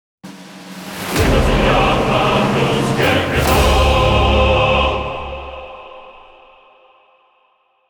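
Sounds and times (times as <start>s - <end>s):
fanfare: 0.3s - 6.0s.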